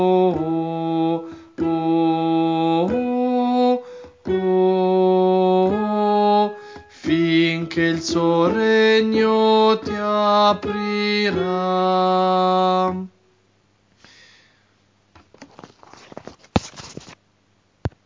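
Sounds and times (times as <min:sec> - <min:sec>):
church sopranos singing: 0:00.0 - 0:13.1.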